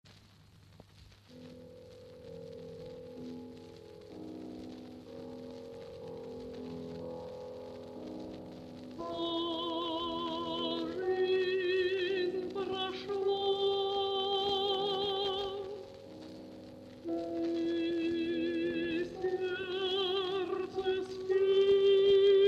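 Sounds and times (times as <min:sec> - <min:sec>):
soprano singing: 0:08.9 - 0:22.4.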